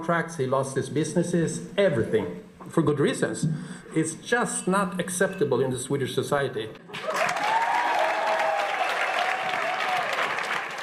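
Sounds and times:
speech: 0.0s - 7.2s
audience clapping: 6.9s - 10.8s.

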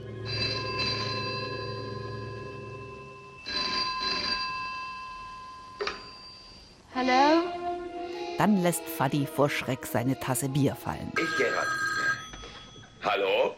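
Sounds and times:
old-fashioned 1950s telephone bell ringing: 0.0s - 6.9s, 10.3s - 13.4s
speech: 7.0s - 7.6s, 8.4s - 11.8s, 13.0s - 13.5s.

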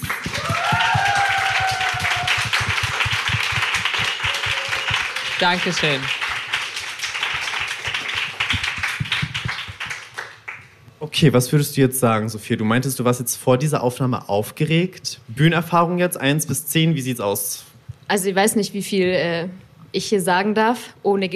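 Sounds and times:
audience applause: 0.0s - 10.7s
speech: 5.4s - 6.2s, 11.2s - 21.3s.

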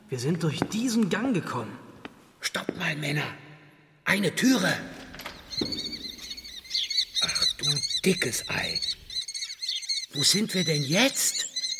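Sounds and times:
speech: 0.1s - 1.8s, 2.4s - 3.4s, 4.1s - 5.0s, 5.6s - 5.9s, 7.6s - 9.0s, 10.2s - 11.4s
falcons screeching in an aviary: 5.2s - 11.7s.

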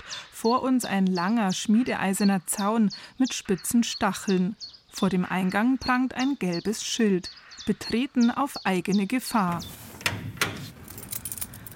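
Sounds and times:
speech: 0.4s - 9.8s
door unlocking: 9.5s - 11.7s
keys jangling: 10.4s - 11.7s.

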